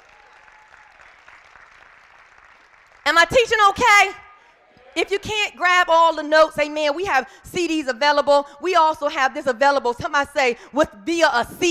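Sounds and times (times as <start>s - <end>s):
church congregation applause during a sermon: 0.0s - 3.2s
speech: 3.1s - 4.2s, 5.0s - 11.6s.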